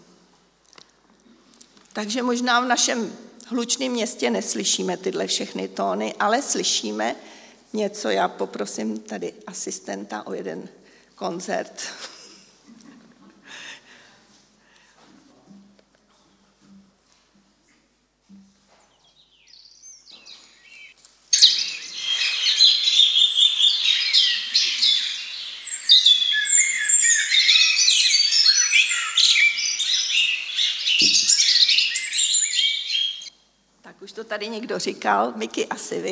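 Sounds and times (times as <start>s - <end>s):
speech: 2.0s - 12.2s, 34.4s - 36.1s
dense chorus of birds chirping and trilling: 19.0s - 33.3s.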